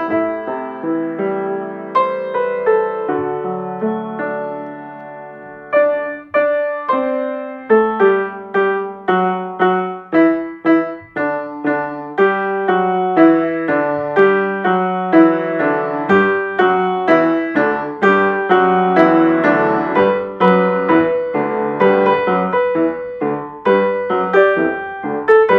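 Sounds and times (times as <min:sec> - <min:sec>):
piano variations on a Christmas song: 0:00.0 - 0:25.5.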